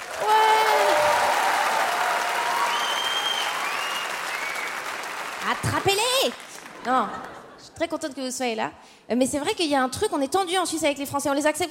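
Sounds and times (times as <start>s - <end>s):
audience clapping: 0.0s - 7.5s
faint audience whistles: 2.7s - 4.8s
speech: 5.5s - 11.6s.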